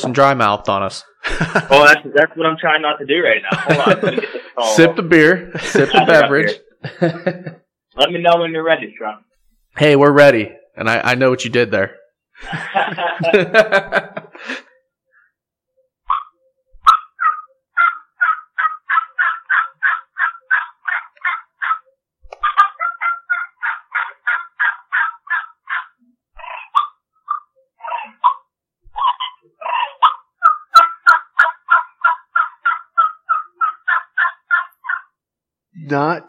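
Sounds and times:
speech: 0.0s - 14.7s, 35.9s - 36.2s
laughter: 1.2s - 2.0s, 3.4s - 7.7s, 12.4s - 14.7s
turkey gobbles and clucks on a batwing triple-reed diaphragm turkey call: 16.1s - 35.2s.

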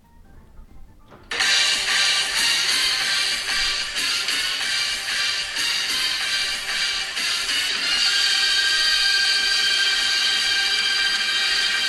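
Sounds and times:
spy film theme music: 0.1s - 11.8s
automated door opening: 0.4s - 7.2s.

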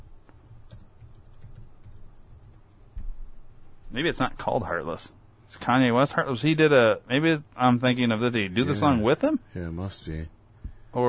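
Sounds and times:
typing on a computer keyboard: 0.3s - 2.6s
speech: 3.9s - 11.0s.

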